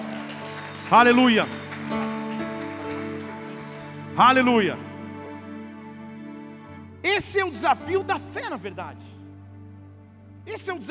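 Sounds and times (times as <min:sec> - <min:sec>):
audience applauding: 0:00.0 - 0:05.9
sustained keyboard chord: 0:00.0 - 0:10.9
speech: 0:00.9 - 0:02.0, 0:04.2 - 0:04.8, 0:07.2 - 0:09.2, 0:10.4 - 0:10.9.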